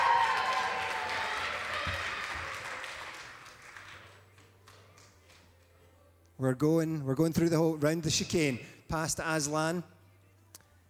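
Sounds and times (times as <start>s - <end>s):
audience cheering: 0.0s - 3.3s
audience clapping: 0.0s - 5.5s
speech: 6.4s - 10.0s.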